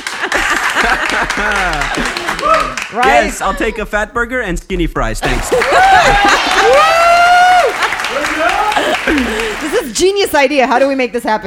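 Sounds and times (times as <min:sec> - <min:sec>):
audience clapping: 0:00.0 - 0:03.7, 0:05.2 - 0:11.0
laughter: 0:00.0 - 0:04.2, 0:05.2 - 0:10.0
speech: 0:00.9 - 0:07.0, 0:08.4 - 0:11.4.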